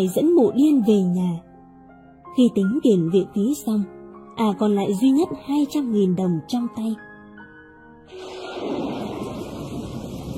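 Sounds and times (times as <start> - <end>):
speech: 0.0 - 1.5, 2.3 - 7.1, 8.1 - 8.8
heavy rain: 8.1 - 10.3
thunder: 8.1 - 10.3.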